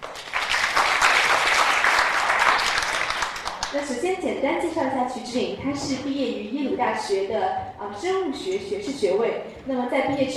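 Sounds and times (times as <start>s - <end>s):
crowd applauding: 0.0s - 3.8s
speech: 3.8s - 10.3s.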